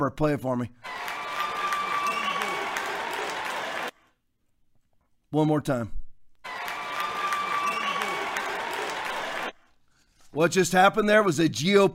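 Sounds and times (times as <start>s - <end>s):
speech: 0.0s - 1.1s, 5.3s - 6.0s, 10.3s - 11.9s
vote counters clapping: 0.8s - 4.1s, 6.4s - 9.7s.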